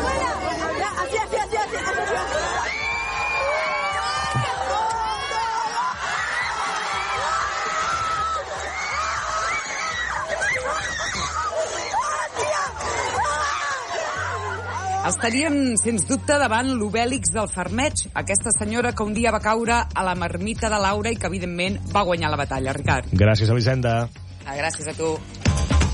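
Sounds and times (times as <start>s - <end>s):
live audience cheering and shouting: 0.0s - 15.5s
speech: 15.2s - 25.4s.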